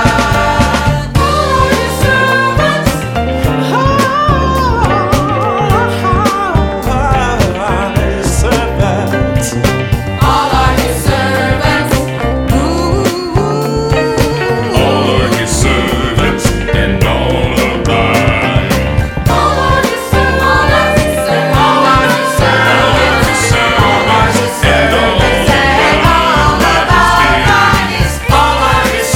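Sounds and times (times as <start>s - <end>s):
R&B funk music: 0.0s - 29.1s.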